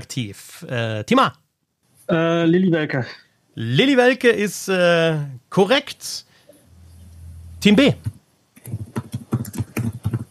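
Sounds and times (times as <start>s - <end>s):
speech: 0.0s - 1.4s, 2.1s - 6.3s, 7.6s - 8.9s
typing on a computer keyboard: 8.6s - 10.2s.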